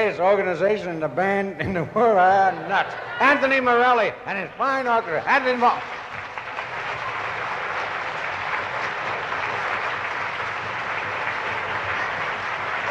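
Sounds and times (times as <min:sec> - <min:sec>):
speech: 0:00.1 - 0:06.0
live audience applause for an orchestra: 0:05.1 - 0:12.8.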